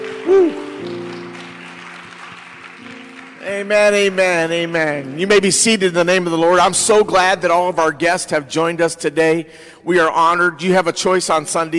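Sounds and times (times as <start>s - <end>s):
audience hand clapping: 0.0s - 5.7s
speech: 0.3s - 1.1s, 3.5s - 11.7s.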